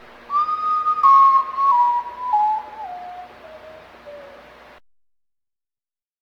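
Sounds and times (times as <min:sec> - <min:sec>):
night bird whistled call: 0:00.3 - 0:04.5.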